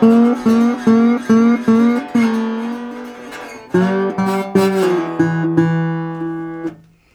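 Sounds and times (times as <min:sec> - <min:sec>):
blues guitar: 0:00.0 - 0:07.1.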